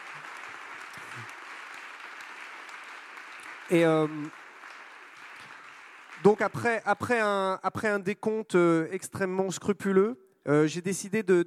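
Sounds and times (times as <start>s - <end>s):
audience applause: 0.0s - 7.2s
speech: 3.7s - 4.4s, 6.2s - 11.4s.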